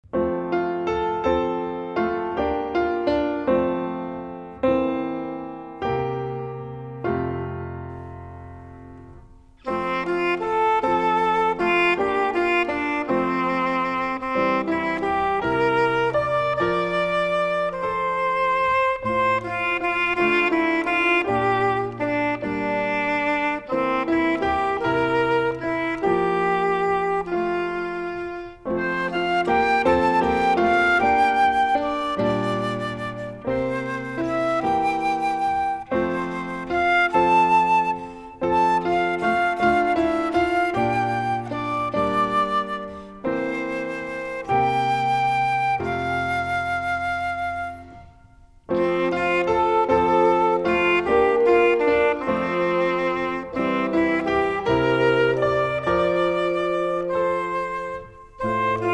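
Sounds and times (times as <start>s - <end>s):
music: 0.0s - 58.9s.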